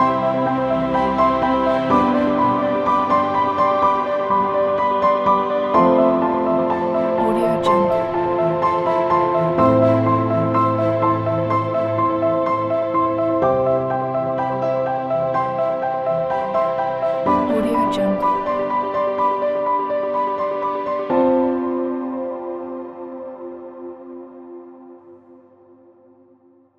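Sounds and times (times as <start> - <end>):
hopeful piano: 0.0 - 25.4.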